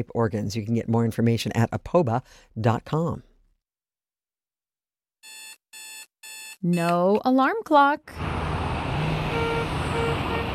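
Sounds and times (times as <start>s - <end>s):
speech: 0.0s - 3.3s, 6.6s - 8.2s
road traffic rumbling: 8.1s - 10.5s
car horn: 9.1s - 10.5s.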